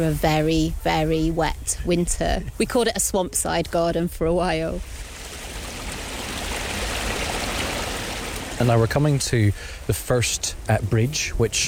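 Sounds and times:
speech: 0:00.0 - 0:05.0, 0:08.6 - 0:11.6
constructed garden stream flowing in a swampside garden: 0:04.4 - 0:11.6.

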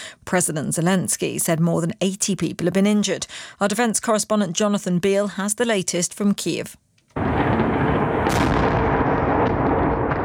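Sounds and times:
speech: 0:00.3 - 0:07.4
explosions during a drone and missile attack on Kyiv: 0:07.2 - 0:10.2.

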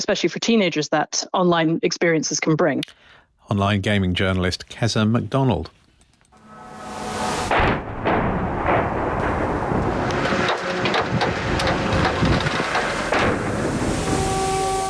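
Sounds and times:
speech: 0:00.0 - 0:05.8
constant loud rumbling roar: 0:06.9 - 0:14.8
missile and drone explosive blasts striking a city: 0:06.9 - 0:14.8.

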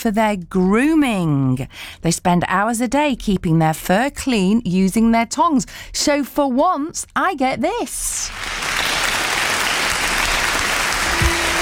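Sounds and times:
speech: 0:00.0 - 0:08.7
audience applause: 0:08.3 - 0:11.5.

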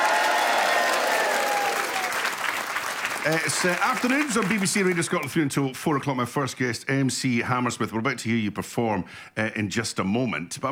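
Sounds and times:
faint cheering: 0:00.0 - 0:04.9
live audience applause: 0:00.0 - 0:05.3
speech: 0:03.2 - 0:10.6.

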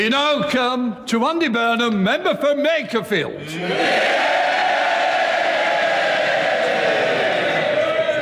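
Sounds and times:
speech: 0:00.0 - 0:04.6
loud cheers from Labour MPs: 0:03.5 - 0:08.2.

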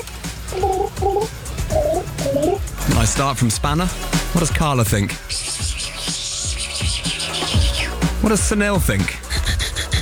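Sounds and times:
voice imitating rain: 0:00.0 - 0:02.6
steady hiss and low rumble: 0:00.0 - 0:09.9
speech: 0:00.5 - 0:01.4, 0:03.0 - 0:05.6, 0:08.2 - 0:09.2.

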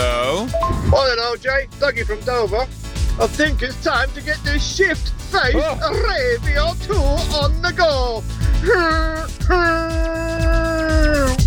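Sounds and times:
air horn imitated with the voice: 0:00.0 - 0:00.5, 0:08.6 - 0:11.4
thumping beat: 0:00.0 - 0:11.4
speech: 0:00.9 - 0:11.4.

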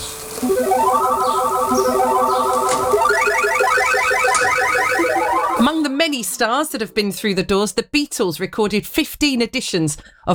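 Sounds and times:
tape loop with artificial reverberation, buzzy alarm-like tones: 0:00.0 - 0:06.6
speech: 0:06.2 - 0:10.3.

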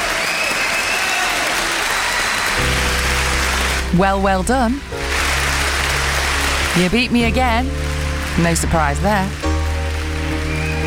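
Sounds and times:
audience clapping: 0:00.0 - 0:10.8
low hum: 0:02.6 - 0:10.8
speech: 0:03.9 - 0:05.0, 0:06.8 - 0:09.5.

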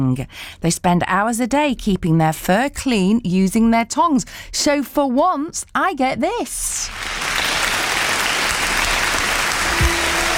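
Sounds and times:
speech: 0:00.0 - 0:07.3
audience applause: 0:06.9 - 0:10.3.

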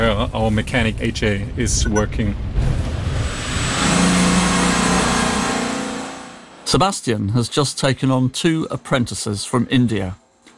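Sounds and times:
speech: 0:00.1 - 0:02.5, 0:06.7 - 0:10.2
car engine humming while driving through the village of Buchenbach: 0:03.2 - 0:06.6.

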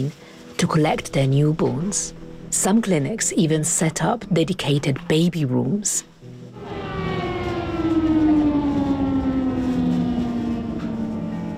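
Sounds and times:
speech: 0:00.0 - 0:06.1
air raid alarm siren: 0:06.3 - 0:11.5.

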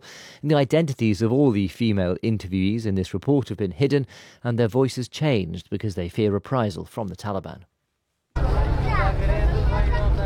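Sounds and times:
speech: 0:00.4 - 0:07.7
car driving through the streets of Kabul: 0:08.4 - 0:10.2.

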